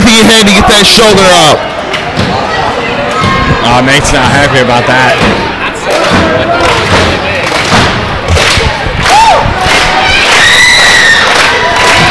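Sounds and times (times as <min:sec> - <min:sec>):
wrestling crowd cheering: 0:00.0 - 0:12.0
speech: 0:00.2 - 0:02.3, 0:03.6 - 0:05.5
heavy thumps and thuds: 0:05.1 - 0:09.1.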